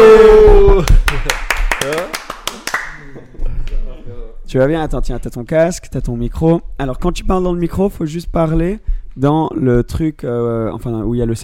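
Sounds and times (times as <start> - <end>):
short round of applause: 0.7 - 3.8
speech: 4.5 - 11.4.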